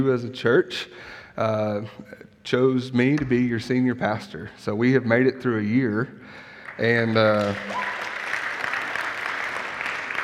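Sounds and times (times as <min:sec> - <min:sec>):
speech: 0:00.0 - 0:07.9
audience applause: 0:06.6 - 0:10.2.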